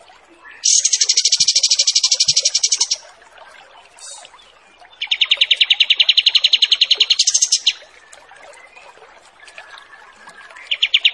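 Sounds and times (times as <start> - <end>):
wild pied triller song with buzzy trills, sharp note and short whistle: 0.6 - 3.0, 5.0 - 7.8.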